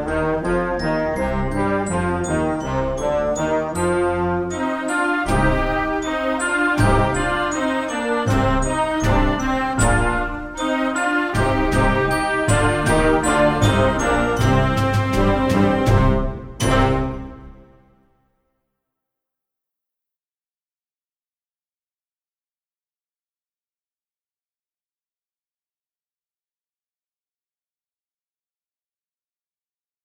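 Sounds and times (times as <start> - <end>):
fast play-along backing track: 0.0 - 17.6.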